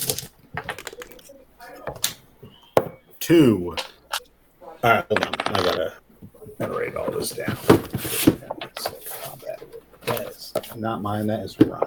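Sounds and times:
10-sided dice clattering: 0.0s - 1.3s, 5.1s - 6.0s
speech: 3.3s - 3.9s, 4.8s - 6.0s, 6.6s - 8.6s, 10.1s - 11.8s.

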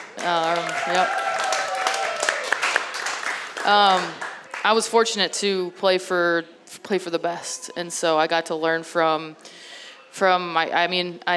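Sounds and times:
crowd whooping and cheering: 0.0s - 4.6s
audience applause: 0.0s - 4.7s
speech: 0.2s - 1.3s, 3.6s - 11.3s.

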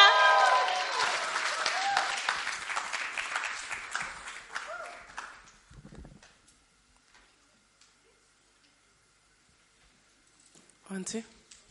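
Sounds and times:
audience clapping: 0.2s - 5.7s
speech: 11.1s - 11.4s.

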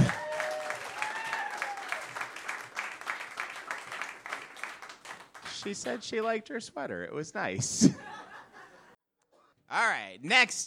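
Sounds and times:
audience whooping at a comedy show: 0.0s - 5.7s
audience applause at a comedy show for a comedian: 0.0s - 6.4s
speech: 5.6s - 8.1s, 9.8s - 10.6s
laughter: 7.6s - 9.0s.

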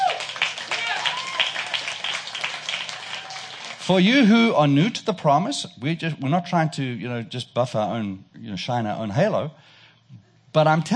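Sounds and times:
audience applause: 0.0s - 4.3s
speech: 3.9s - 9.7s, 10.6s - 10.9s.

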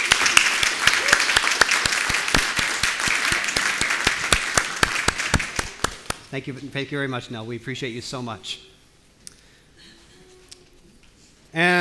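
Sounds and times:
audience round of applause: 0.0s - 6.2s
speech: 6.3s - 8.7s, 11.6s - 11.7s.

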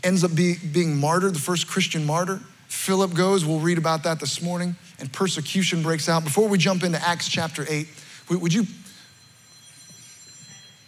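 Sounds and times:
speech: 0.0s - 8.8s
soft high-pitched electronic prayer alarm ringing: 8.0s - 10.8s.

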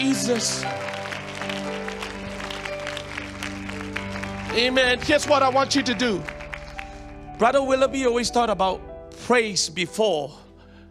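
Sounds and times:
speech: 0.0s - 1.8s, 4.5s - 6.3s, 7.4s - 10.4s
audience clapping hands: 0.0s - 7.8s.

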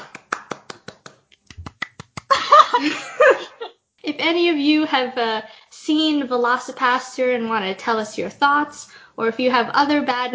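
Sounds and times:
round of applause: 0.0s - 2.5s
laughter: 2.3s - 3.7s
speech: 2.8s - 3.4s, 4.1s - 10.3s.

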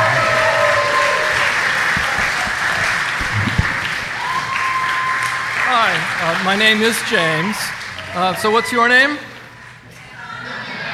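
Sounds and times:
audience clapping: 0.0s - 8.1s
speech: 6.4s - 9.3s.

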